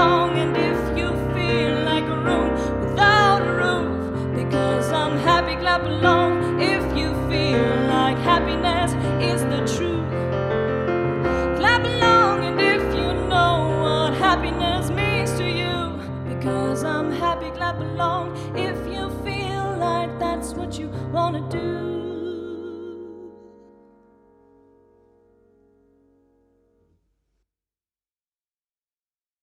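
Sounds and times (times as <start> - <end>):
person singing with a chill lounge band: 0.0 - 10.3, 11.0 - 23.6
happy chill lounge band piano: 0.0 - 27.0.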